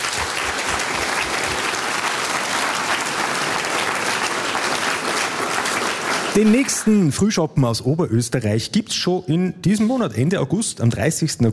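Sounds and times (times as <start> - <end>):
audience applause: 0.0 - 7.3
speech: 6.4 - 11.5.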